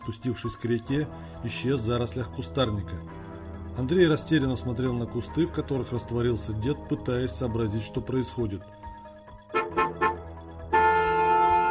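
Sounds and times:
speech: 0:00.1 - 0:03.2, 0:03.8 - 0:08.8
car horn: 0:09.5 - 0:11.7.

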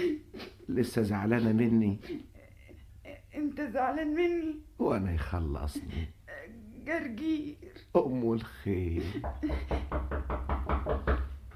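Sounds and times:
speech: 0:00.7 - 0:02.3, 0:03.6 - 0:10.2
heavy knocking on a door in a dramatized scene: 0:09.2 - 0:11.4.

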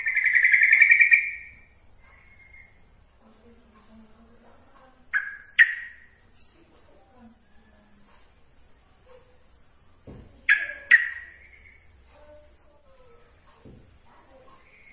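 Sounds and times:
yellow-vented bulbul giving bright notes: 0:00.0 - 0:02.8, 0:05.0 - 0:06.5, 0:10.4 - 0:11.9.

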